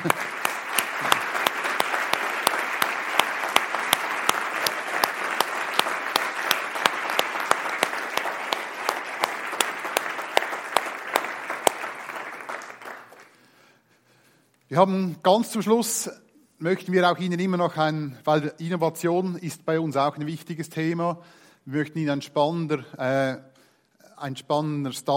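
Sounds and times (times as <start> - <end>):
speech: 0.0 - 0.2, 14.8 - 23.5, 24.2 - 25.1
audience applause: 0.0 - 13.4.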